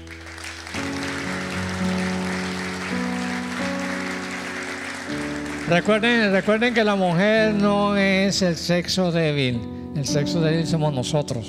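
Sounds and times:
audience applause: 0.0s - 7.5s
speech: 5.7s - 11.4s.

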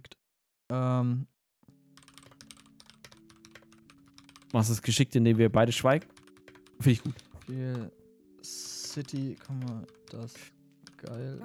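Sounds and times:
speech: 0.7s - 1.3s, 4.5s - 6.2s, 6.8s - 11.4s
typing on a computer keyboard: 1.7s - 11.4s.

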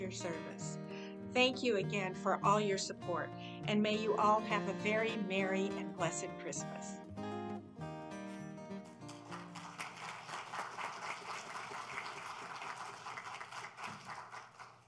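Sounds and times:
speech: 0.0s - 7.0s
audience applause: 9.1s - 14.8s.

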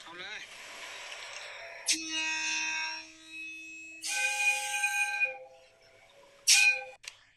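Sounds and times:
Hitachi locomotive whistle, steam-like: 1.8s - 7.0s.

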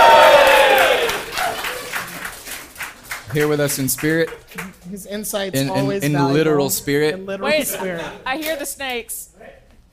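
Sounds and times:
live audience cheering and whooping: 0.0s - 2.2s
audience applause: 0.0s - 4.9s
speech: 3.4s - 9.6s.

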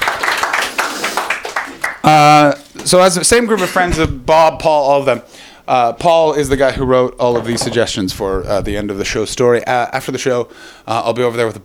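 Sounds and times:
audience applause: 0.0s - 2.1s
speech: 2.1s - 11.6s.

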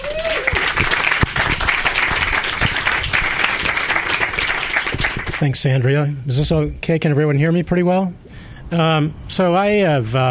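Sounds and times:
audience applause welcoming three panelists: 0.0s - 5.5s
speech: 5.4s - 10.3s.

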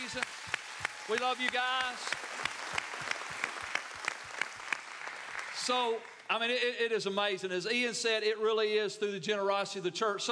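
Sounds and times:
audience applause: 0.0s - 6.3s
sharp evenly spaced claps: 0.0s - 6.4s
speech: 0.1s - 2.2s, 5.6s - 10.2s.

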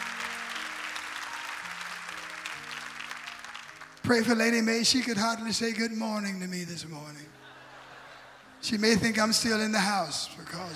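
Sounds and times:
rousing applause: 0.0s - 5.1s
speech: 4.1s - 7.4s, 8.6s - 10.7s
laughter: 7.4s - 9.3s.

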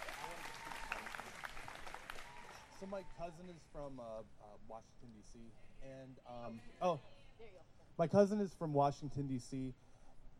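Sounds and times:
audience clapping: 0.0s - 3.2s
speech: 2.8s - 9.9s.

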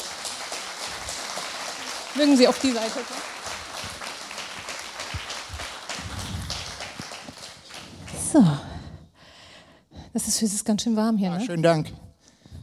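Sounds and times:
audience applause: 0.0s - 8.6s
speech: 2.2s - 3.4s, 8.3s - 8.7s, 10.2s - 12.0s.

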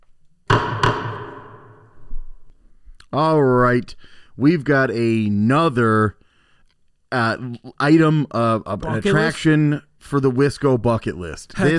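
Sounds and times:
gavel banging: 0.5s - 2.1s
speech: 3.1s - 6.2s, 7.1s - 11.7s.

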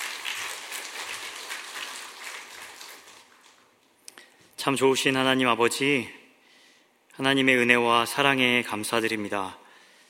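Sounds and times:
audience applause welcoming a pastor: 0.0s - 3.6s
speech: 4.6s - 6.2s, 7.2s - 9.6s.

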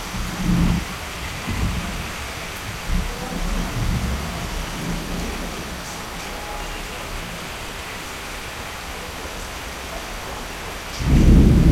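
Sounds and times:
thunder rumbling in an evening thunderstorm in North Kolkata: 0.0s - 8.3s, 11.0s - 11.7s
rain in an evening thunderstorm in North Kolkata: 0.0s - 11.7s.

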